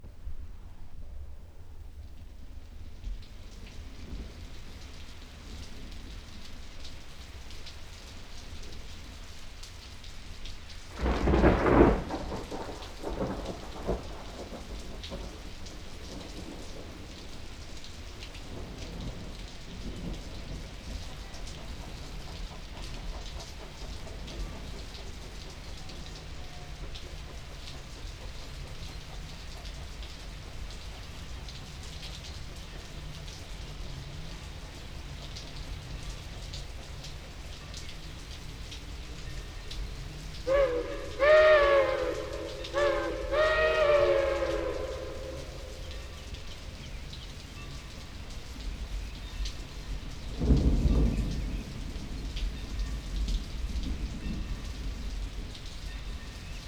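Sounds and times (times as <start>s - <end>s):
steam railroad train: 2.4s - 56.6s
thunder: 10.9s - 47.8s, 48.6s - 56.6s.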